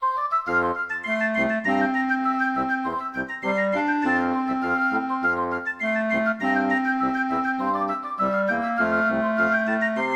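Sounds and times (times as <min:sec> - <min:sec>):
classical music: 0:00.0 - 0:10.1.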